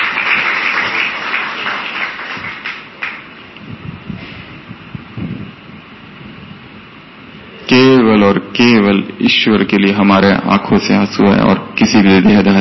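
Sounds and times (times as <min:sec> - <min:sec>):
audience applause: 0:00.0 - 0:03.3
speech: 0:08.1 - 0:12.6.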